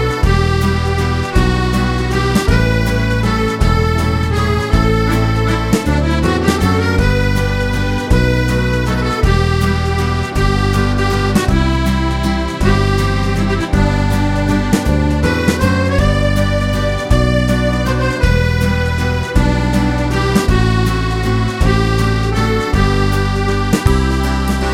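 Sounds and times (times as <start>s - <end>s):
accordion playing an Irish waltz: 0.0s - 24.7s.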